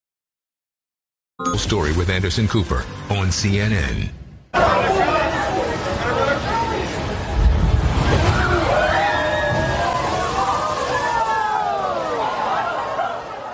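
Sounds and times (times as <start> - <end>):
speech: 1.4 - 5.2
crowd of people shouting and screaming: 4.6 - 13.5.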